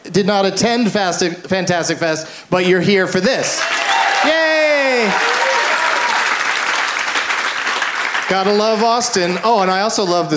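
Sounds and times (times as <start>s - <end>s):
speech: 0.2s - 5.5s, 8.3s - 10.3s
audience applause at a live show in Austin: 3.6s - 9.8s.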